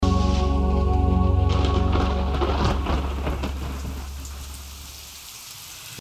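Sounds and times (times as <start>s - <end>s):
rain: 0.1s - 5.9s
thunder and lightning: 1.4s - 5.0s.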